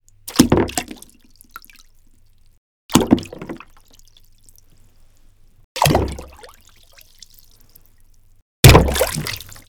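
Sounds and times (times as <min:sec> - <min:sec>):
stone falling into water: 0:02.9 - 0:03.6, 0:05.8 - 0:06.4, 0:08.7 - 0:09.6.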